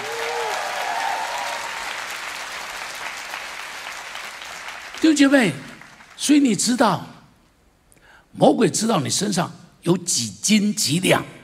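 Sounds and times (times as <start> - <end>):
audience applause: 0.0 - 6.2
speech: 5.0 - 7.2, 8.4 - 11.4.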